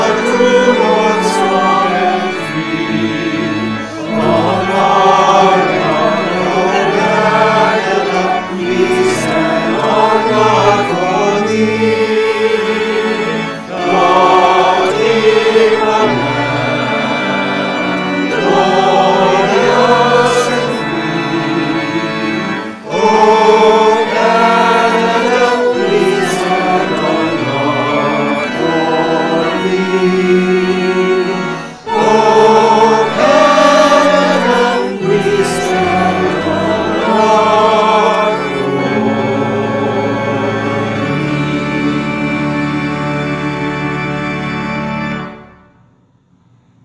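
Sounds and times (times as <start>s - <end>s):
virtual choir singing a national anthem: 0.0s - 45.4s.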